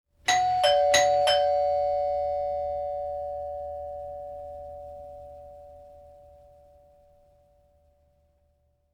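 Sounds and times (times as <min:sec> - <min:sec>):
doorbell: 0:00.3 - 0:06.4.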